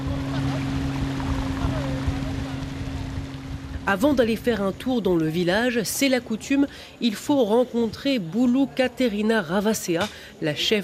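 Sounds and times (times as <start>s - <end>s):
small motorboat gliding on water: 0.0s - 6.4s
speech: 3.9s - 10.8s.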